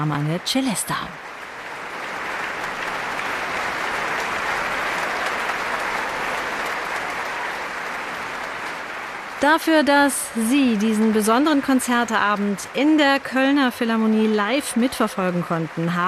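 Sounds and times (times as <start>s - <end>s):
speech: 0.0s - 1.3s, 9.4s - 16.0s
concert audience applause: 0.0s - 16.0s.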